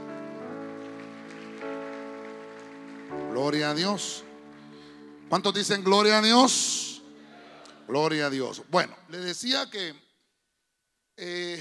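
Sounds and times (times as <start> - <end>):
church audience clapping loudly: 0.0 - 7.8
speech: 3.4 - 4.3, 5.3 - 6.9, 7.9 - 10.0, 11.2 - 11.5.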